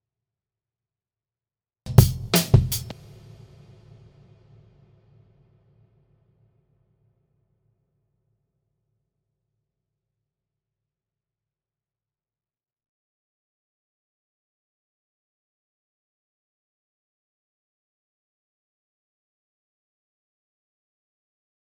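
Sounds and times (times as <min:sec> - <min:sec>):
drum sample: 0:01.9 - 0:04.6.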